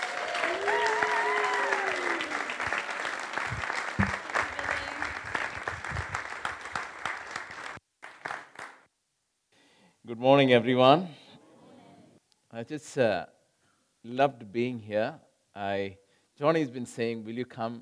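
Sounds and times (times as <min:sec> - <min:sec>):
audience applause welcoming a speaker: 0:00.0 - 0:08.8
speech: 0:10.2 - 0:11.2, 0:12.6 - 0:13.3, 0:14.0 - 0:17.8.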